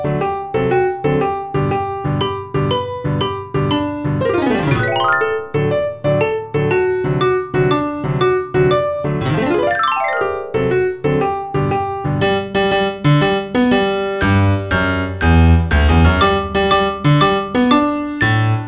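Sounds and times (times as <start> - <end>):
piano: 0.0 - 18.6
xylophone: 4.2 - 6.0, 9.6 - 11.0.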